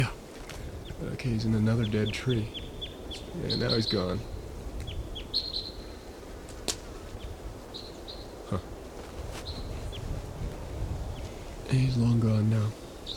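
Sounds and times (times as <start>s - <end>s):
bird singing in the top of a tree: 0.7s - 6.3s, 7.1s - 8.7s, 9.4s - 10.1s, 11.1s - 13.1s
speech: 1.1s - 4.3s, 11.7s - 12.8s.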